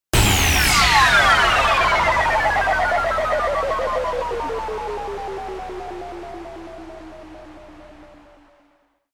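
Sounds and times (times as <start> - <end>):
electron burst impact: 0.1 - 3.8.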